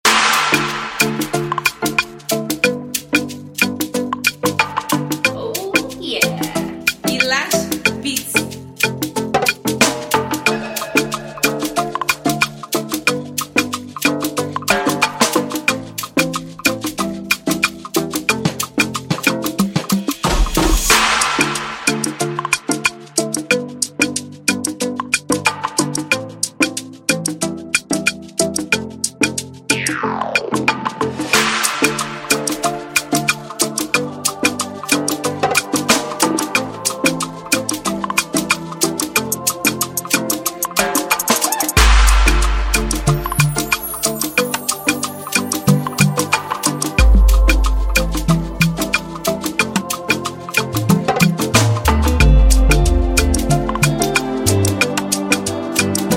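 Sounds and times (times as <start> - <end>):
afrogroove pop music: 0.0 - 56.1.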